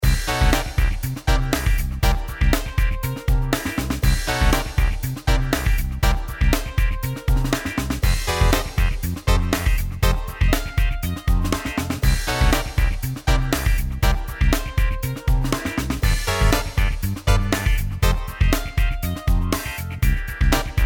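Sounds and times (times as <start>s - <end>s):
funky pixel chiptune music: 0.0s - 20.8s.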